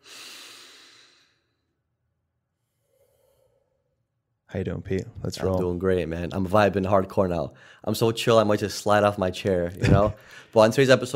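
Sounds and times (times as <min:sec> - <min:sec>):
group taking a deep breath: 0:00.0 - 0:01.8, 0:02.6 - 0:04.0, 0:07.6 - 0:07.8, 0:10.2 - 0:10.6
speech: 0:04.5 - 0:11.1.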